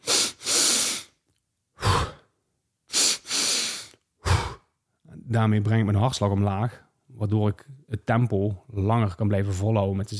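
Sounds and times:
deep breaths in through the nose: 0.0 - 1.2, 1.8 - 2.3, 2.9 - 4.7
speech: 5.3 - 10.1.

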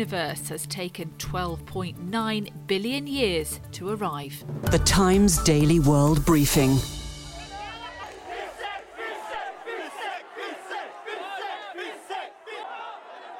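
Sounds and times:
speech: 0.0 - 7.0
protest crowd voices: 7.3 - 13.3
protesters near Sri Lankan President Gotabaya Rajapaksa's home in a Colombo suburb chanting: 7.3 - 13.3.

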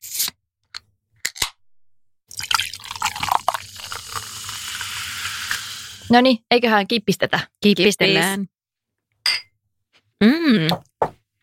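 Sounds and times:
cider pouring into glasses: 2.3 - 6.1
speech: 6.1 - 8.5, 10.2 - 10.9.

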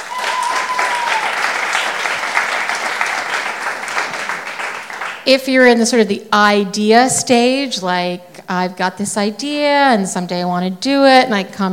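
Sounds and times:
crowd clapping: 0.0 - 5.3
speech: 5.2 - 11.7.

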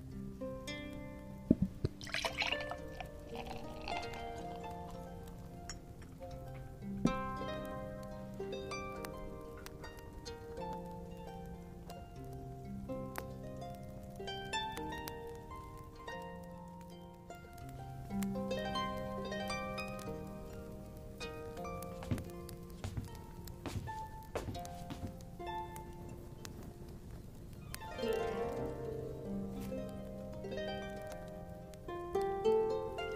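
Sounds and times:
relaxing lute music: 0.0 - 33.1
rustling: 0.0 - 33.1
sharp clicks and knocks: 1.5 - 2.1.

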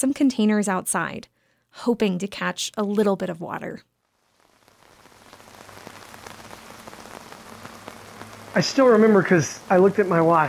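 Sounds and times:
speech: 0.0 - 3.9, 8.6 - 10.4
heavy rain: 4.1 - 10.4.

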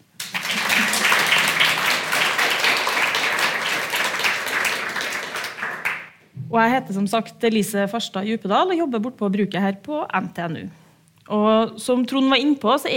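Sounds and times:
audience applause: 0.2 - 6.1
speech: 6.5 - 12.9.

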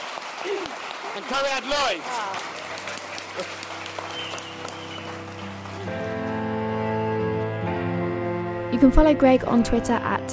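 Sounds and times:
audience applause: 0.0 - 7.2
speech: 0.4 - 3.8, 8.8 - 10.3
tonal music track with sustained notes: 2.4 - 10.3.

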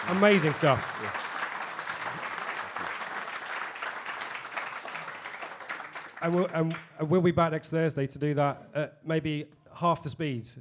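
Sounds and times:
speech: 0.0 - 1.2, 6.2 - 10.5
audience applause: 0.0 - 6.8.

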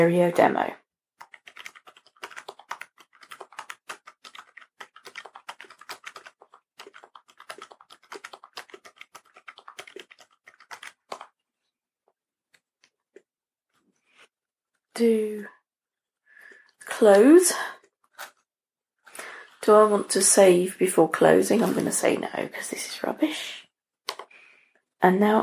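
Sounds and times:
speech: 0.0 - 0.8, 15.0 - 15.6, 17.0 - 17.8, 19.7 - 23.6, 25.0 - 25.4
typing on a computer keyboard in a word processor: 1.2 - 11.3.

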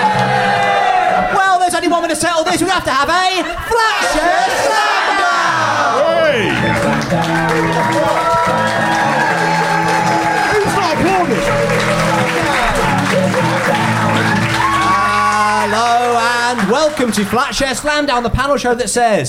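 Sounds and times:
crowd cheering and whooping at a live comedy show at Ocean Beach: 0.0 - 2.8, 3.4 - 18.4
speech: 2.1 - 4.8, 17.0 - 19.2
applause at a live comedy show: 6.3 - 18.2.

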